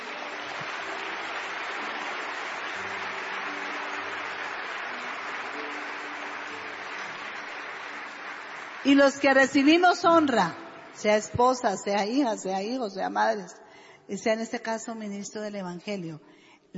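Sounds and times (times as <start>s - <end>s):
audience applause: 0.0s - 10.8s
speech: 8.8s - 16.7s.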